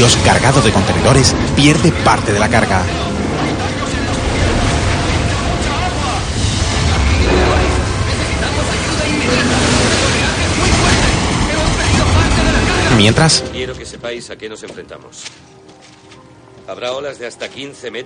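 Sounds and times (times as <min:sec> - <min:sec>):
speech: 0:00.0 - 0:03.1, 0:13.0 - 0:15.6, 0:16.7 - 0:18.0
storm wind roaring at sea: 0:00.8 - 0:13.2.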